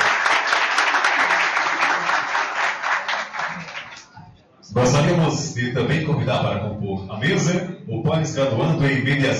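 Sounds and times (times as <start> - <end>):
crowd applause: 0.0 - 4.1
speech: 4.8 - 9.3.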